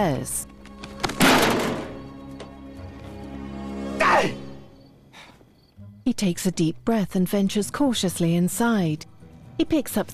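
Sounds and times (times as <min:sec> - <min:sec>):
speech: 0:00.0 - 0:00.5, 0:06.2 - 0:10.1
body crashing against a sign: 0:01.0 - 0:02.0.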